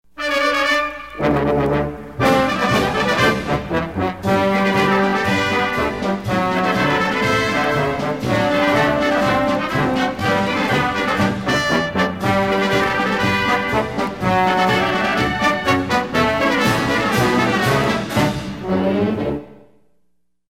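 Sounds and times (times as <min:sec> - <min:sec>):
basic military parade march: 0:00.1 - 0:19.4.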